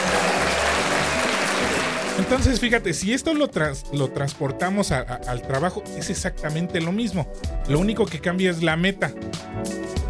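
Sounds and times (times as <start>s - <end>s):
applause: 0.0s - 2.6s
speech: 2.2s - 10.0s.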